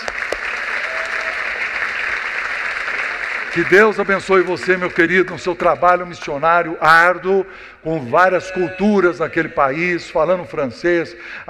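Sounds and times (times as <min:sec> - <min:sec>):
audience applause: 0:00.0 - 0:05.6
speech: 0:03.6 - 0:11.4.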